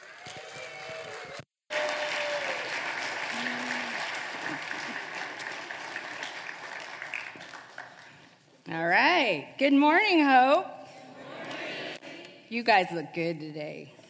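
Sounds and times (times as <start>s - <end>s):
morning audience applauding a special guest's arrival: 0.0s - 8.3s
speech: 9.6s - 10.7s, 12.5s - 14.0s.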